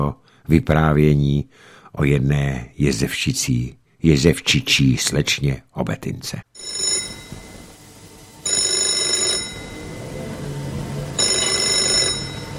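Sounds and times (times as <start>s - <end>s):
speech: 0.0s - 6.9s
telephone ringing: 6.6s - 12.5s.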